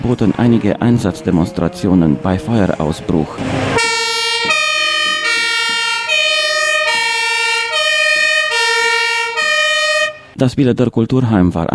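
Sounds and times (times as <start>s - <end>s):
speech: 0.0s - 4.0s, 10.4s - 11.7s
fire engine sirens during a parade: 3.0s - 10.4s.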